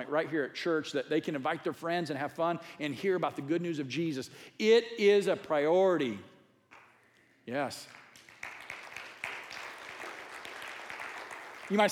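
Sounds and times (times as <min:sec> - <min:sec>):
speech: 0:00.0 - 0:06.3, 0:07.5 - 0:08.0, 0:11.7 - 0:11.9
audience clapping: 0:07.6 - 0:11.9.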